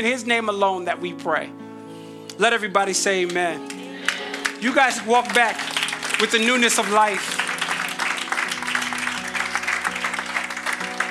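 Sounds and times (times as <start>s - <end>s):
speech: 0.0s - 1.6s, 2.4s - 3.8s, 4.6s - 7.4s
crowd clapping: 3.3s - 11.1s.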